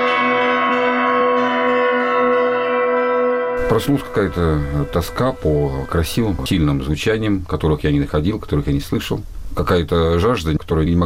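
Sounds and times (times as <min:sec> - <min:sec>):
church bells ringing: 0:00.0 - 0:06.8
speech: 0:03.7 - 0:11.0.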